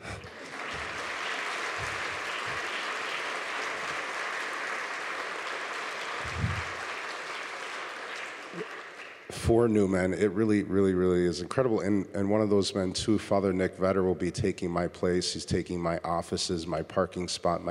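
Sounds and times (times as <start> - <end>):
audience clapping: 0.0 - 9.6
speech: 9.5 - 17.6.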